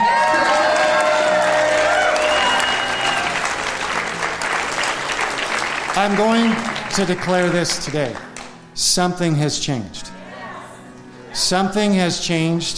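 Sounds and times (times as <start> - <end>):
cheers and whoops: 0.0 - 3.6
large crowd clapping: 0.0 - 8.6
speech: 6.0 - 10.1, 11.4 - 12.7.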